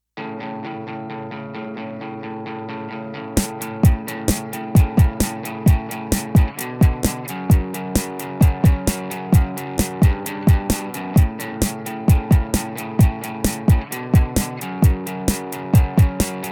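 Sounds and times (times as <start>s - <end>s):
musical accompaniment: 3.4s - 16.5s.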